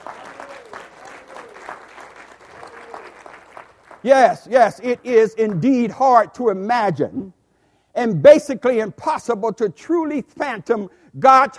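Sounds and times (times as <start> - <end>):
audience applause: 0.0 - 4.1
speech: 4.0 - 7.4, 8.0 - 11.5.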